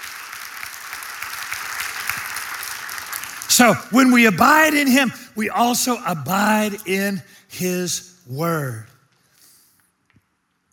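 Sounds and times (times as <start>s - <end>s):
audience hand clapping: 0.0s - 4.2s
speech: 3.5s - 8.9s.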